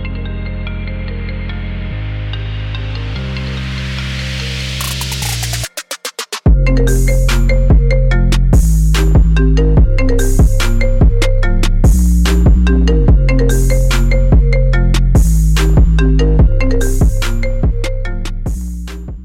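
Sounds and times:
iPhone trap ringtone: 4.8s - 19.0s.

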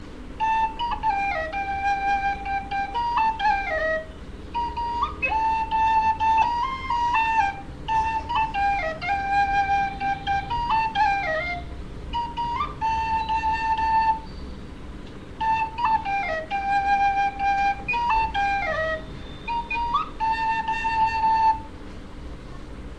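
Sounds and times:
log flute playing: 0.0s - 22.5s.

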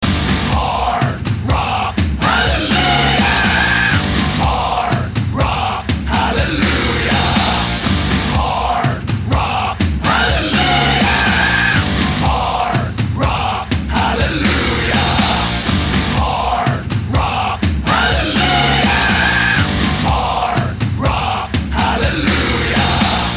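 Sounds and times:
hard rock music: 0.0s - 23.3s.

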